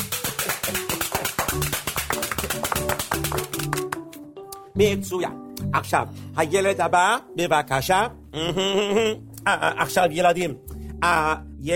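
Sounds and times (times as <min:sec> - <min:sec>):
children clapping hands: 0:00.0 - 0:04.2
speech: 0:04.8 - 0:11.7.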